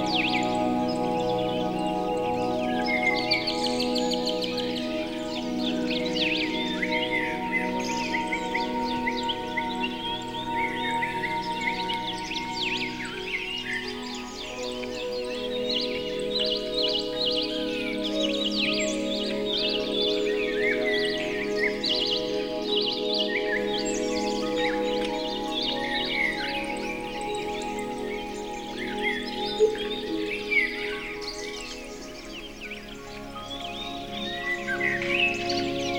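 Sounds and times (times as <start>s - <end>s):
continuous droning musical backing: 0.0s - 35.9s
several birds chirping and trilling: 0.0s - 35.9s.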